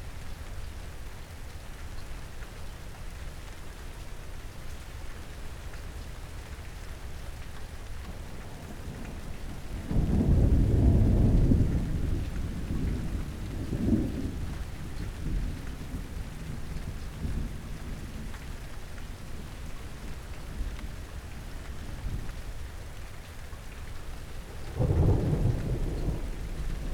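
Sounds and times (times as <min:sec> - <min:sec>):
thunder: 0:08.6 - 0:16.6, 0:24.6 - 0:26.9.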